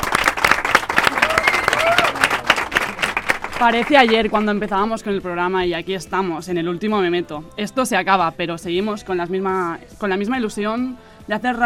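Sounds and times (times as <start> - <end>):
audience applause: 0.0 - 4.6
faint voices and short whoops: 1.0 - 3.0
speech: 3.6 - 11.6.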